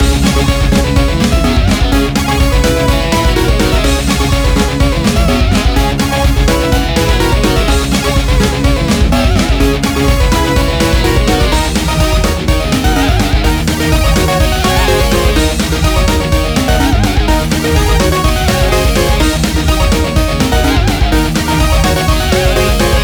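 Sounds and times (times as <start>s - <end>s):
race background music loop: 0.0s - 23.0s.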